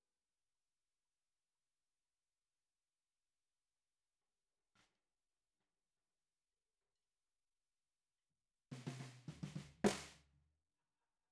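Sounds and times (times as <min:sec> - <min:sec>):
bottom snare drum: 0:08.8 - 0:10.2.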